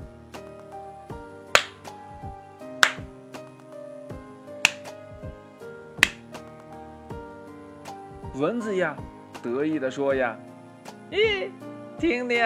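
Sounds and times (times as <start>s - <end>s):
hands slapping together: 1.6s - 1.8s, 2.8s - 3.0s, 4.7s - 4.9s
speech: 8.4s - 10.5s, 11.1s - 12.4s.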